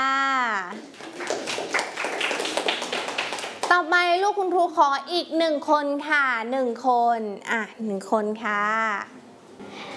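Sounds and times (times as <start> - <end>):
children clapping for a classmate: 0.7 - 3.8
speech: 3.7 - 9.2.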